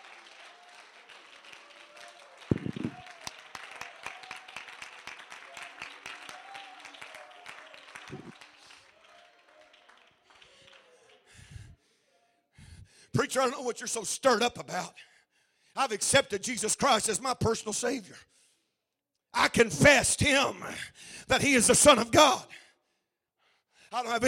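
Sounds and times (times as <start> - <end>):
crowd clapping hands: 0.0 - 11.6
speech: 13.3 - 15.1, 15.8 - 18.3, 19.4 - 22.6, 23.9 - 24.2.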